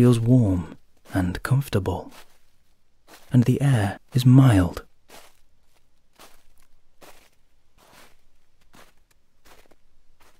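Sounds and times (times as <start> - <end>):
speech: 0.0 - 2.3, 3.3 - 5.2
footsteps crunching through snow: 2.0 - 3.4, 4.7 - 10.3.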